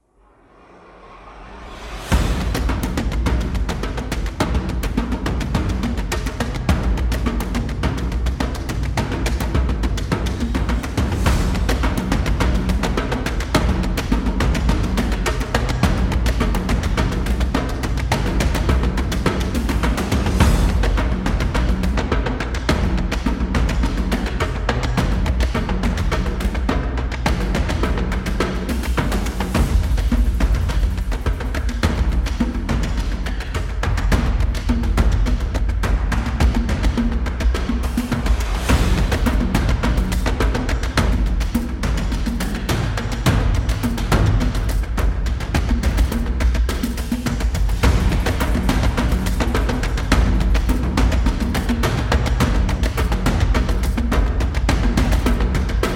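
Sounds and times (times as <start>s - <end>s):
tribal music: 0.2s - 55.9s.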